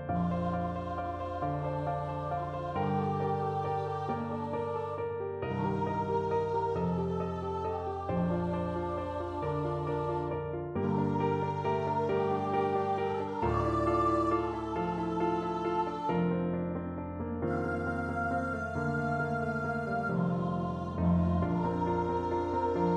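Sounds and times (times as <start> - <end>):
evensong voice singing: 0.1 - 22.9.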